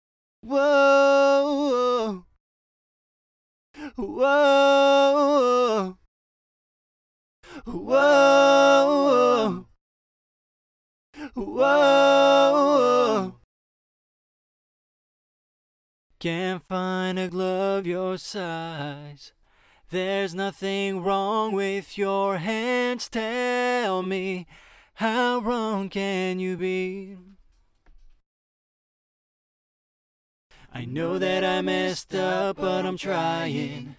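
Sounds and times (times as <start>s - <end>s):
vocals: 0.4s - 2.4s, 3.8s - 6.1s, 7.4s - 9.8s, 11.2s - 13.5s, 16.1s - 27.5s, 30.5s - 33.9s.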